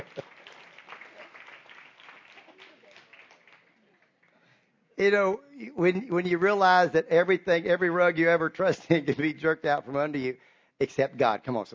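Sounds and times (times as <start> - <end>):
audience applause: 0.0 - 4.5
speech: 5.0 - 11.7.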